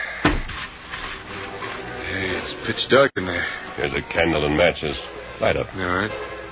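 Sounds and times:
heavy cellar double door thud: 0.2s - 0.7s
speech: 2.7s - 6.3s.

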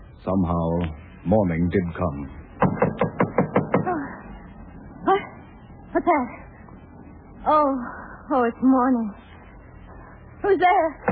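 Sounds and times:
speech: 0.3s - 2.4s, 6.0s - 6.4s, 7.4s - 9.3s, 10.4s - 11.0s
knocking on front door: 2.6s - 4.0s.

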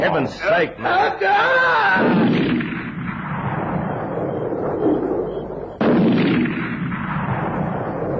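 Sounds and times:
speech: 0.0s - 2.4s
gunshots blasting through a tent: 1.8s - 8.1s.

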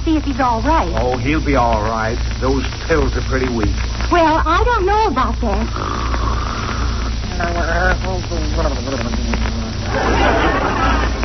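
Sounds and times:
steady low hum: 0.0s - 11.2s
speech: 0.1s - 6.3s, 7.4s - 11.2s
loud theatrical snoring: 5.7s - 7.7s
laughter: 8.4s - 11.2s.

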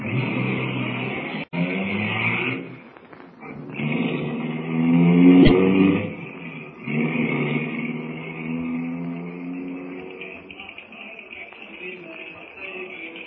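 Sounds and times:
car engine revving and pulling away: 0.0s - 12.5s.

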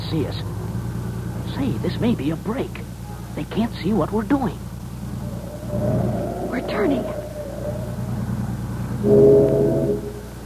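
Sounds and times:
speech: 0.1s - 0.6s, 1.6s - 4.7s, 5.7s - 7.2s, 9.0s - 9.7s
steamship whistle: 5.1s - 10.4s.

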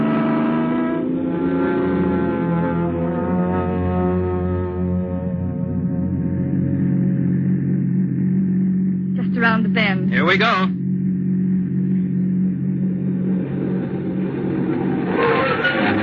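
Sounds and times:
car engine pulling away: 0.0s - 16.0s
speech: 10.2s - 10.8s.

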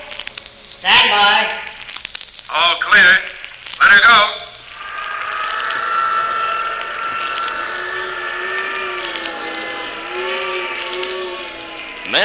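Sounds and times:
speech: 0.8s - 1.7s, 2.5s - 4.5s
droning whining tones: 4.6s - 12.2s
wind-tunnel wind battering a plane: 4.7s - 12.2s.

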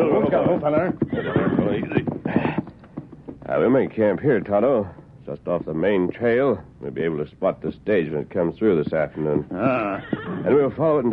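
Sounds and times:
horses whinnying: 0.0s - 2.9s, 9.2s - 10.7s
horse hooves coming to a halt: 0.0s - 11.1s
speech: 0.3s - 1.5s, 3.6s - 11.1s.

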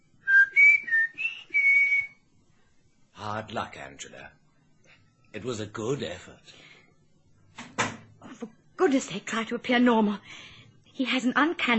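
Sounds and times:
person whistling a signal: 0.2s - 2.2s
speech: 3.4s - 4.4s, 5.3s - 6.7s, 8.9s - 11.7s.

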